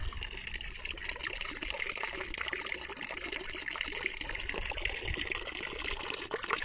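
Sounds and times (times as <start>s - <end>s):
water trickling in a fountain: 0.0s - 6.6s.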